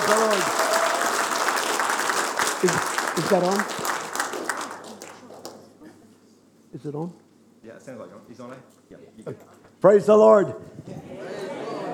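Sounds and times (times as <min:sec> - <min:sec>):
audience applause: 0:00.0 - 0:05.7
speech: 0:02.6 - 0:04.0, 0:06.8 - 0:11.5.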